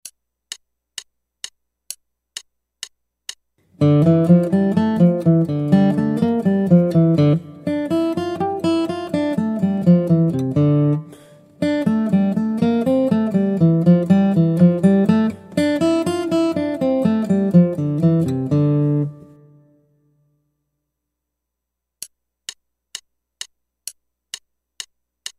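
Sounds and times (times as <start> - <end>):
guitar: 3.6 - 19.9.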